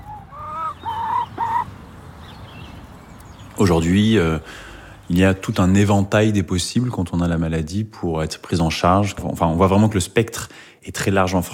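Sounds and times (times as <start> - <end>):
hens clucking: 0.0 - 1.7
speech: 3.6 - 11.5.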